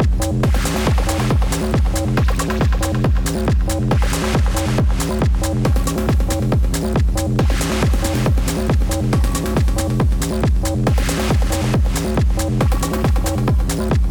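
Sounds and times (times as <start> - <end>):
electronic jam with drum machine, sampler and synthesizer through delay effect: 0.0 - 14.0.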